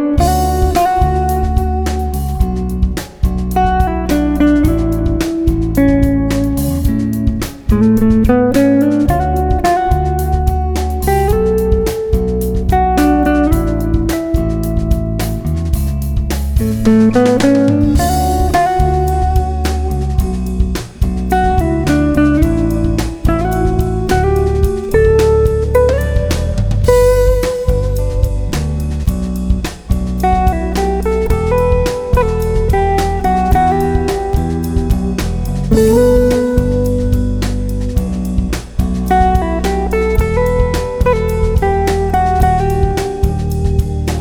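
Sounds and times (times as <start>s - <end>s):
dinner jazz music: 0.1s - 44.2s.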